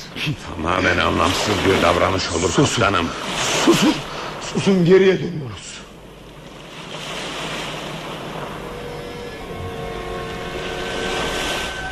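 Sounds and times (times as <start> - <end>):
sea waves washing around a turning ship: 0.0 - 11.9
wind: 0.0 - 11.9
speech: 0.2 - 5.7
faint tonal ship engine hums: 5.9 - 11.9.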